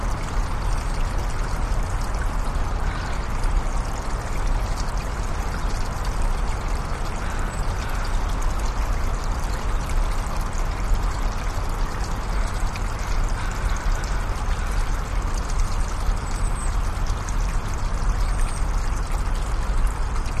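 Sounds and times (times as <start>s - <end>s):
little creek in a park: 0.0s - 20.3s
birds in a park: 2.1s - 20.3s.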